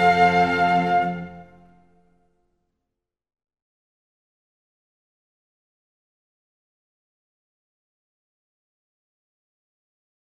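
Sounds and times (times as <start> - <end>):
flute concerto in C major with strings and basso continuo: 0.0 - 2.0.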